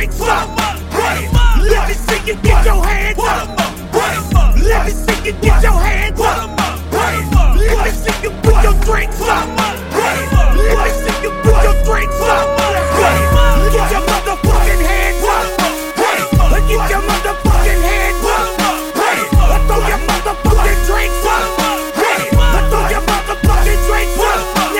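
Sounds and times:
music transition from 80 to 105: 0.2 - 24.7.

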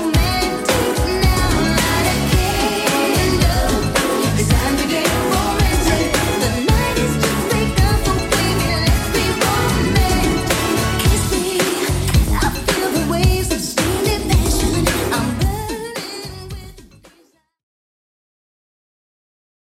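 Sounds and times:
90s style music track at 110 bpm: 0.0 - 16.8.

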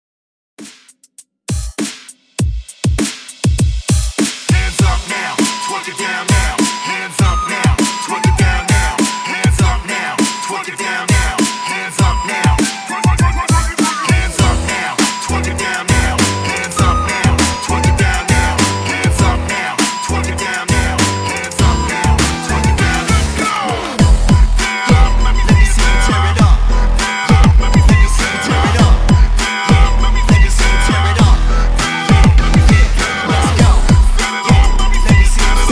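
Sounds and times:
twerk hype music: 0.6 - 35.7.

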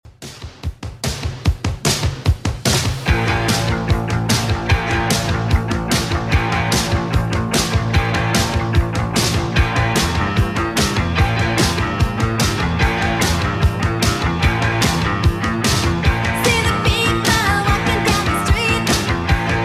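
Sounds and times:
80s style music at 148 bpm: 0.1 - 19.6.

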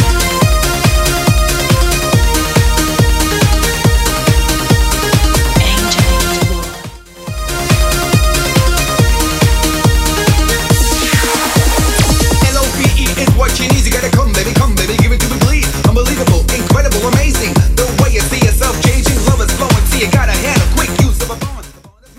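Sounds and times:
electronic music beat at 140 bpm: 0.0 - 22.1.

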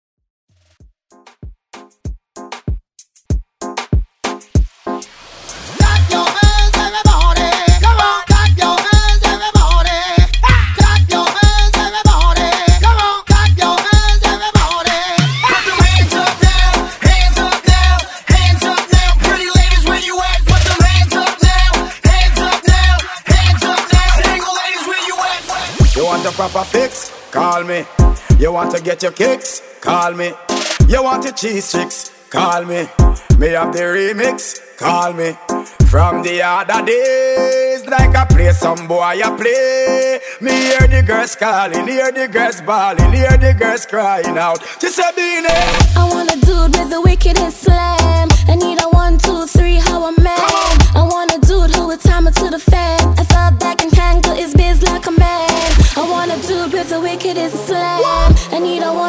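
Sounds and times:
dancehall hype music: 1.1 - 59.0.

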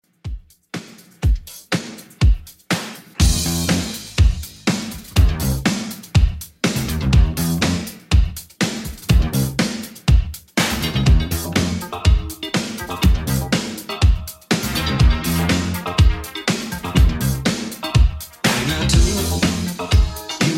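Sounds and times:
80s drum machine beat: 0.0 - 20.5.

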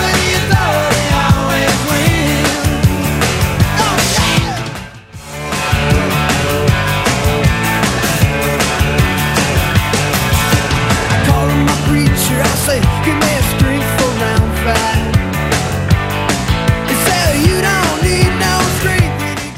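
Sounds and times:
80s rock drum beat: 0.0 - 19.5.

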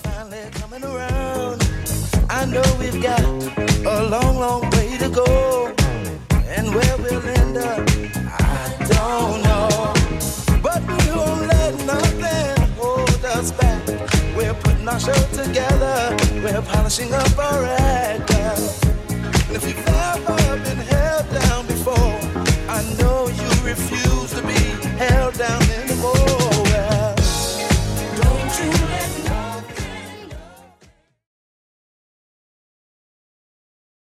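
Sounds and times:
1970s-style Redrum drum machine beat: 0.0 - 30.9.

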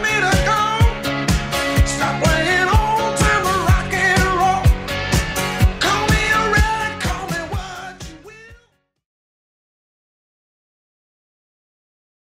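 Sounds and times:
70s style drum beat at 125 bpm: 0.0 - 8.6.

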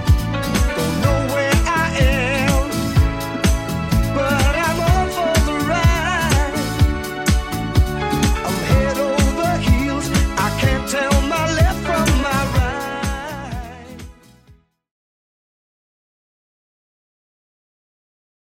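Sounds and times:
70s style music: 0.0 - 14.7.

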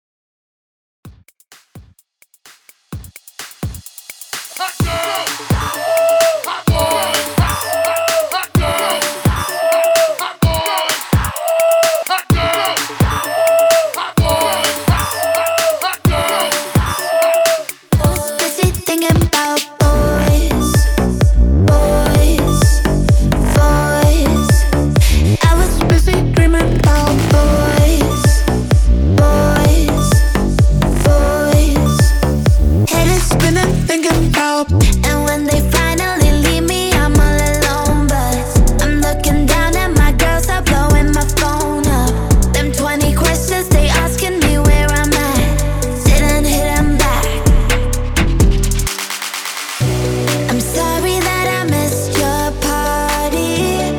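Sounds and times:
hype beat: 1.1 - 53.9.

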